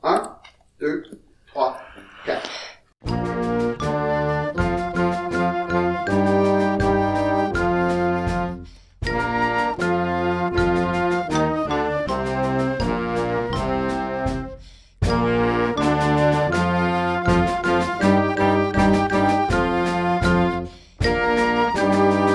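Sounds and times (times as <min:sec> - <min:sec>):
drums: 0:03.0 - 0:22.3.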